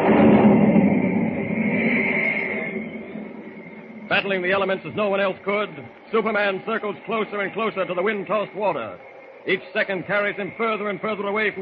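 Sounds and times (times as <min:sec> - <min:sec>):
crashing boom of thunder: 0:00.0 - 0:06.4
speech: 0:04.1 - 0:11.6.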